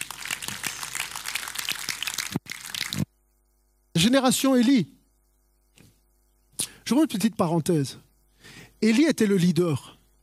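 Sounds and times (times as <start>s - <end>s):
audience applause: 0.0s - 3.0s
speech: 4.0s - 5.0s, 6.9s - 8.1s, 8.8s - 10.0s.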